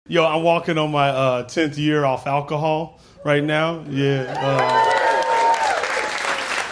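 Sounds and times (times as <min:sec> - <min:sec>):
speech: 0:00.1 - 0:05.0
audience clapping: 0:04.2 - 0:06.6.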